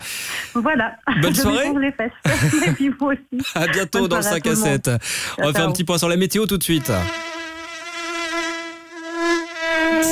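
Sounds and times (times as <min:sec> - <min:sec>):
speech: 0:00.5 - 0:07.4
laughter: 0:02.2 - 0:03.0
mosquito high-pitched whine: 0:06.8 - 0:10.1.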